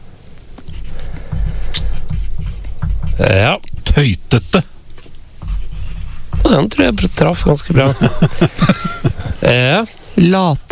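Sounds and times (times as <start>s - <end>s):
pen writing on paper: 0.7s - 4.0s, 5.4s - 7.8s
speech: 3.2s - 4.7s, 6.5s - 10.6s
laughter: 7.4s - 9.8s.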